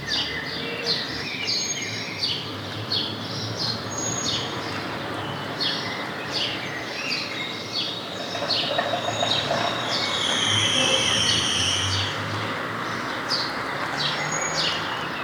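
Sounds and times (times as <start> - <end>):
house sparrow Passer domesticus chirping: 0.2 - 15.2.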